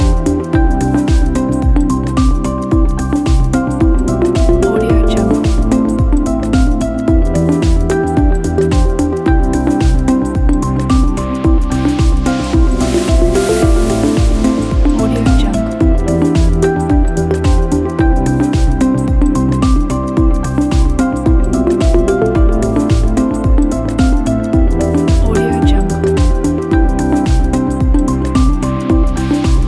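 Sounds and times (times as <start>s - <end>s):
beautiful minimal ambient music: 0.0s - 29.6s.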